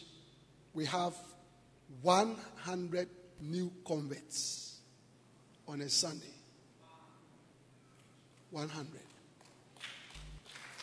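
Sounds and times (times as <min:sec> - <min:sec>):
speech: 0:00.8 - 0:04.7, 0:05.7 - 0:06.4, 0:08.5 - 0:09.1
audience clapping: 0:09.4 - 0:10.8.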